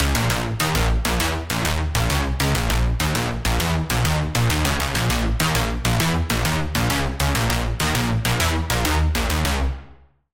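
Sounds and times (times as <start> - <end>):
Sylenth1 synth pluck: 0.0 - 9.9.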